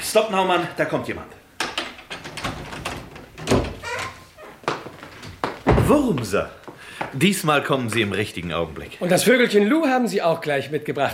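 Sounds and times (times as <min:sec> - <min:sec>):
speech: 0:00.1 - 0:01.4, 0:05.9 - 0:11.1
rattling knocks: 0:01.6 - 0:06.2
door forced open by pushing, heavy thunk: 0:01.6 - 0:06.3
door creaking scrape: 0:02.0 - 0:05.4.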